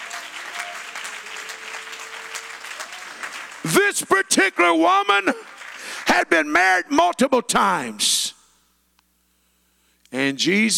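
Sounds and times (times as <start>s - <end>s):
audience applauding: 0.0s - 6.1s
speech: 3.6s - 8.2s, 10.1s - 10.7s.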